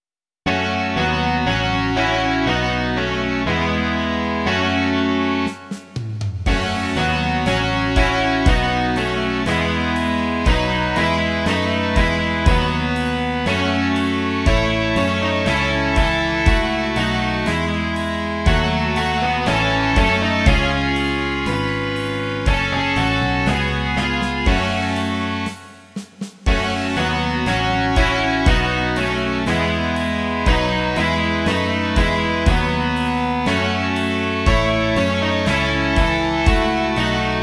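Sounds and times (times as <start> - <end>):
rock music: 0.5 - 37.4.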